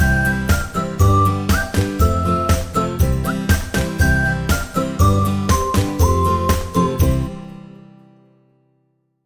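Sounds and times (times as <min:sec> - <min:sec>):
happy whistling: 0:00.0 - 0:07.3.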